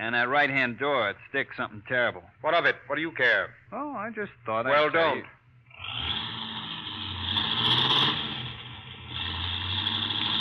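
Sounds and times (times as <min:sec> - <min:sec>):
speech: 0:00.0 - 0:06.0
car engine accelerating and driving away: 0:05.7 - 0:10.4.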